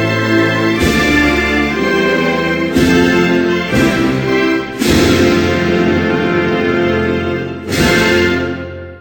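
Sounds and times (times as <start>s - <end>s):
national anthem music: 0.0s - 8.9s.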